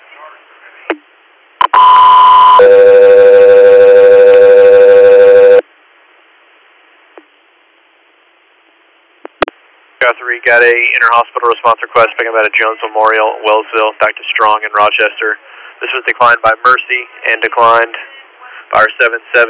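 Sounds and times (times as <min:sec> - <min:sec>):
radio dispatch alert tones: 0:01.6 - 0:05.6
speech: 0:10.2 - 0:18.1, 0:18.7 - 0:19.4.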